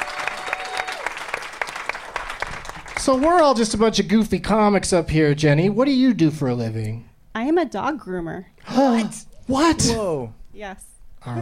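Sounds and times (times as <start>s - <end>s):
audience applause: 0.0s - 3.6s
speech: 3.0s - 11.4s.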